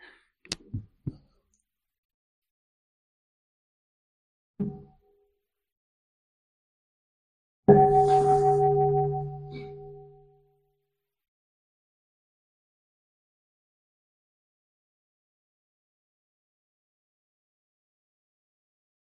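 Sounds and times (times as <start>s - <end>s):
bell ringing: 7.7s - 10.0s.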